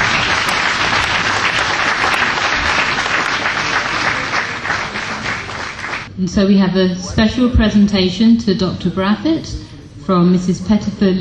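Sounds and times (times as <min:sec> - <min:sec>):
audience applause: 0:00.0 - 0:06.1
speech: 0:06.2 - 0:11.1.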